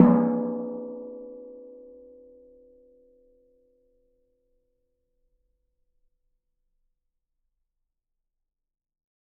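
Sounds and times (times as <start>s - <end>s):
washing machine drum struck outside: 0.0s - 0.9s.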